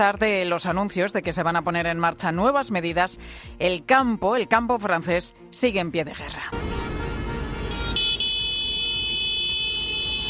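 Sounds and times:
speech: 0.0 - 6.9
tractor horn blaring from a convoy of farm tractors driving toward Paris: 6.6 - 10.2.

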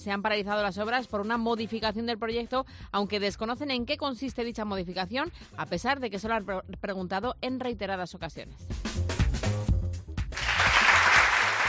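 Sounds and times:
speech: 0.0 - 9.1
applause: 10.2 - 11.6.

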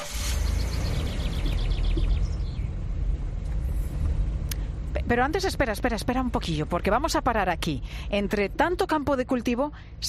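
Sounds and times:
car engine driving off: 0.0 - 4.2
high bird chirps: 0.3 - 2.7
speech: 5.1 - 10.0.

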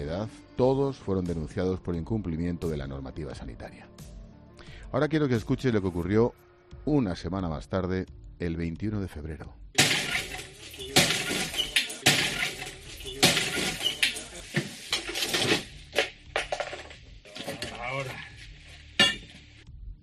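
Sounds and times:
speech: 0.0 - 4.1, 4.9 - 9.6
window glass of a tourist flat breaking: 9.8 - 17.7.

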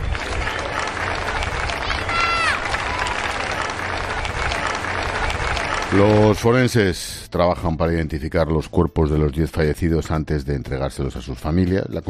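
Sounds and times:
neighbours applauding: 0.0 - 6.8
speech: 5.9 - 12.0.

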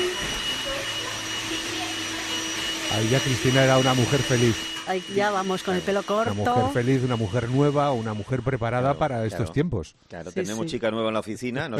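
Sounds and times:
hair dryer drying hair after a haircut: 0.0 - 9.3
speech: 2.9 - 11.7.

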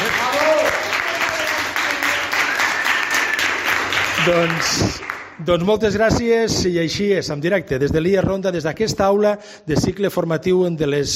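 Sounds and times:
classroom applause: 0.0 - 5.4
speech: 4.2 - 11.1.

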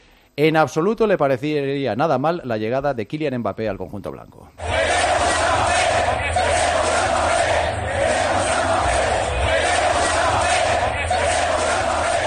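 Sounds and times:
speech: 0.4 - 4.9
stadium crowd chanting at Estadio Santiago Bernabéu: 4.6 - 12.2.

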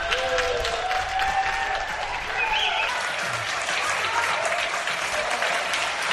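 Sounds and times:
applause from windows and balconies: 0.0 - 6.1
people cheering: 0.0 - 6.1.

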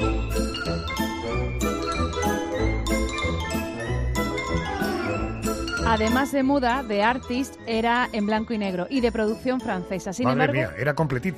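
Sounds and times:
silent film score music: 0.0 - 11.3
speech: 5.9 - 11.3.

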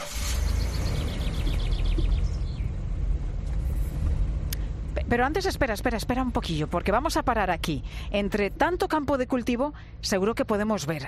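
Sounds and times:
car engine and road rumble: 0.0 - 11.0
high bird chirps: 0.2 - 2.7
speech: 5.1 - 11.0.

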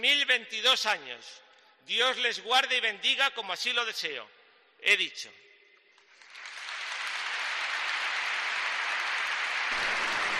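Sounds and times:
speech: 0.0 - 5.5
audience applause in a cathedral: 6.1 - 10.3.

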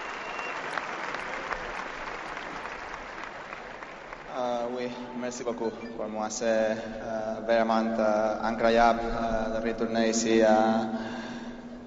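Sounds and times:
Parisian stadium crowd applause: 0.0 - 5.8
speech: 5.3 - 11.2.

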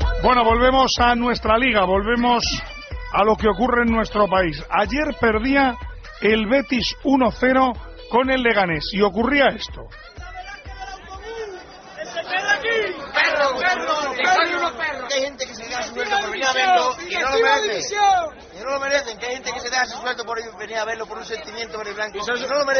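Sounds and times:
speech: 0.2 - 10.2, 13.4 - 22.7
football fans shouting protest chants: 10.2 - 18.6.

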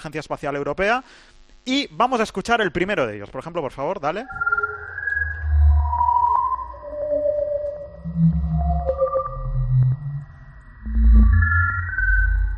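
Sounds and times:
speech: 0.0 - 4.6
gliding tones of black hole sonification from NASA data: 4.2 - 12.5
deep rumbling drone: 4.3 - 12.5.

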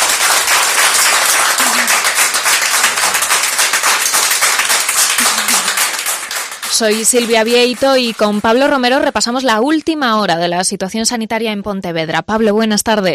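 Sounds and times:
crowd applauding discharged hospital patients: 0.0 - 8.8
speech: 6.8 - 13.1.

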